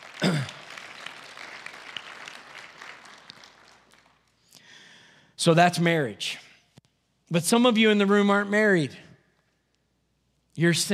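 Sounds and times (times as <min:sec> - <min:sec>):
audience applause: 0:00.0 - 0:04.2
speech: 0:05.4 - 0:06.4, 0:07.3 - 0:09.0, 0:10.6 - 0:10.9.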